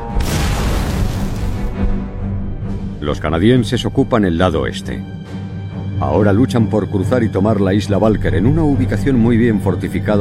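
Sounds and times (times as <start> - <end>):
heavy artillery fire from a World War II battle in the southwest Netherlands: 0.1 - 1.8
speech: 3.0 - 5.2, 6.0 - 10.1.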